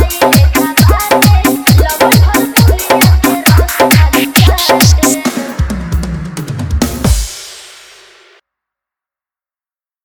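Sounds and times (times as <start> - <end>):
bass dance music mix: 0.0 - 7.9.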